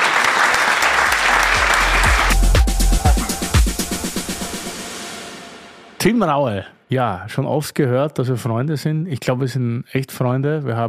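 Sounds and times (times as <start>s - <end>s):
audience applause: 0.0s - 4.3s
speech: 6.0s - 10.8s.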